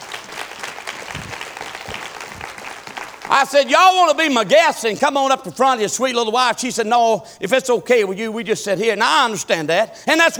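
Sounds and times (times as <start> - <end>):
audience hand clap: 0.0 - 4.4
speech: 3.4 - 10.3.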